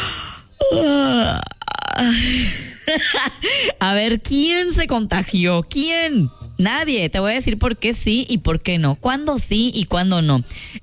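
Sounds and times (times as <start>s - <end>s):
yawn: 0.0s - 2.6s
speech: 0.7s - 10.8s.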